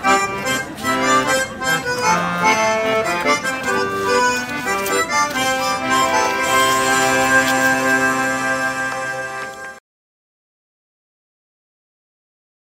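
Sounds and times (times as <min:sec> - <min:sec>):
schottische dance music: 0:00.0 - 0:09.8.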